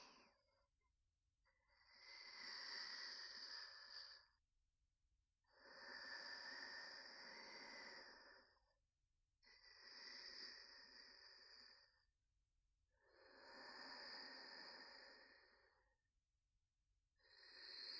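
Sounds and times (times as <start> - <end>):
person breathing in sleep: 0.0 - 0.6, 1.6 - 4.4, 5.4 - 8.7, 9.4 - 12.1, 13.0 - 16.0, 17.2 - 17.9.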